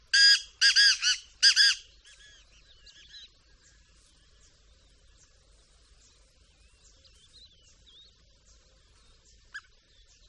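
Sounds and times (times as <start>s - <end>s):
Black francolin harsh grating call: 0.2s - 2.4s.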